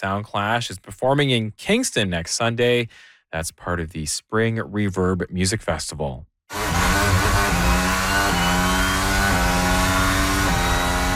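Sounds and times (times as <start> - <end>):
speech: 0.0 - 6.3
Formula One race car engine screaming with gear shifts: 6.5 - 11.1.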